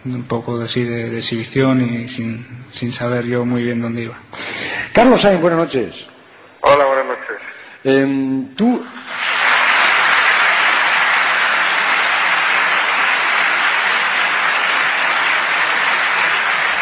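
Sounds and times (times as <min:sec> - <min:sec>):
speech: 0:00.0 - 0:09.1
audience applause: 0:09.1 - 0:16.8.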